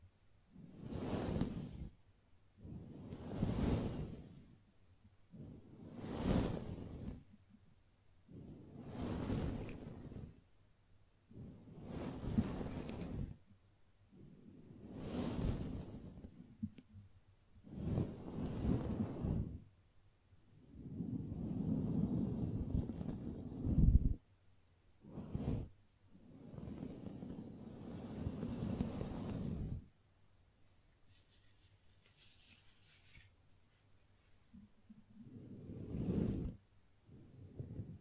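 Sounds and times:
soft brushing swooshes: 0.6s - 2.0s, 2.6s - 4.6s, 5.3s - 7.4s, 8.3s - 10.4s, 11.3s - 13.5s, 14.1s - 16.7s, 17.6s - 19.7s, 20.7s - 24.2s, 25.0s - 30.0s, 30.9s - 38.0s.

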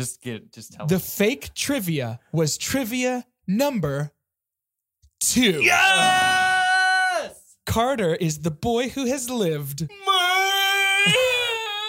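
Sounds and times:
speech: 0.0s - 4.2s, 5.2s - 6.4s, 7.7s - 10.3s, 11.0s - 11.3s
voice imitating a villain's scream: 5.6s - 7.4s, 9.9s - 11.8s.

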